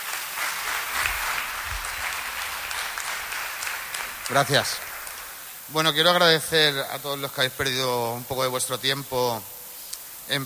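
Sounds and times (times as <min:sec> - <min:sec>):
loud audience applause: 0:00.0 - 0:05.6
speech: 0:04.3 - 0:04.9, 0:05.7 - 0:09.5, 0:10.3 - 0:10.4.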